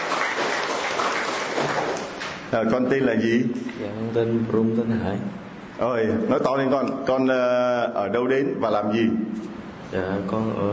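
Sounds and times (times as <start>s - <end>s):
round of applause: 0.0s - 2.5s
speech: 1.6s - 10.7s.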